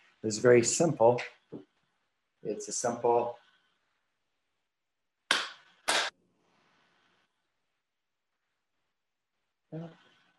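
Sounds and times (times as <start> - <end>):
speech: 0.2 - 1.7, 2.4 - 3.4, 9.7 - 10.0
ritual hand claps: 5.3 - 6.2.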